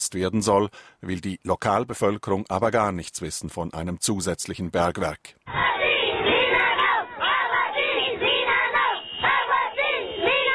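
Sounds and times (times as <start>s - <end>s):
speech: 0.1s - 5.7s
large protest crowd chanting slogans in unison: 5.5s - 10.5s.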